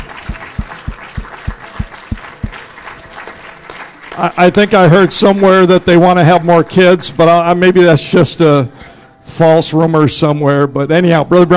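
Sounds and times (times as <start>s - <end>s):
audience applauding: 0.0s - 5.4s
speech: 4.2s - 11.5s.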